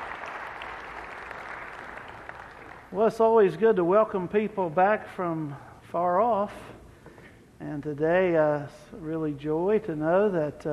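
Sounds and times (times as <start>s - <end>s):
congregation applauding during a church service: 0.0s - 3.0s
speech: 2.9s - 6.8s, 7.6s - 10.7s.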